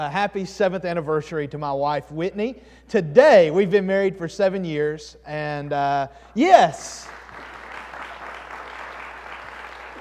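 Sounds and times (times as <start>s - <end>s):
speech: 0.0s - 7.2s
audience applause: 7.0s - 9.9s.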